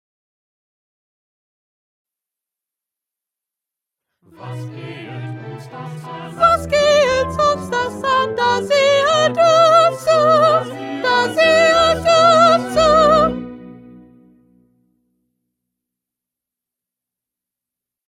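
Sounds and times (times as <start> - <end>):
first soprano singing: 4.3 - 14.3.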